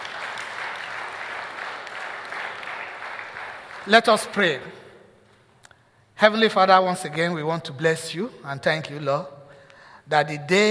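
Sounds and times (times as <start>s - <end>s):
church audience applauding: 0.0s - 4.7s
speech: 3.8s - 4.8s, 6.2s - 9.4s, 10.1s - 10.6s.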